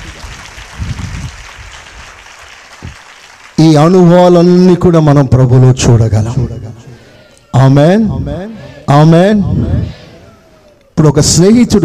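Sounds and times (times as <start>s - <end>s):
church congregation clapping loudly during a Telugu sermon: 0.0s - 4.7s
speech: 3.6s - 6.6s, 7.6s - 10.0s, 11.0s - 11.8s.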